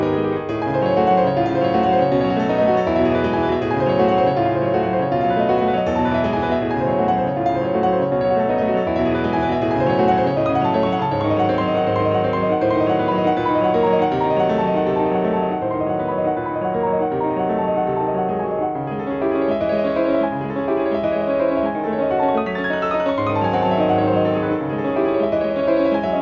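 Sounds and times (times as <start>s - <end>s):
grand piano: 0.0s - 26.2s.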